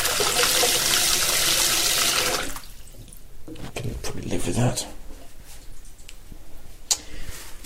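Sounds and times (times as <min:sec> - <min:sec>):
tap water running into sink: 0:00.0 - 0:02.8
speech: 0:04.4 - 0:05.0.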